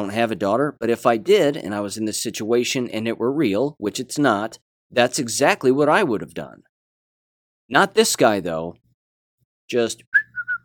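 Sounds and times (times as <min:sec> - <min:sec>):
speech: 0:00.0 - 0:06.7, 0:07.7 - 0:08.8, 0:09.7 - 0:10.1
person whistling: 0:10.1 - 0:10.6.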